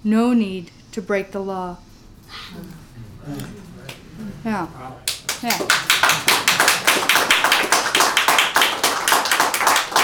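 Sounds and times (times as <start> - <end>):
speech: 0.0 - 3.6, 4.2 - 7.4
crowd audience clapping: 5.1 - 10.0.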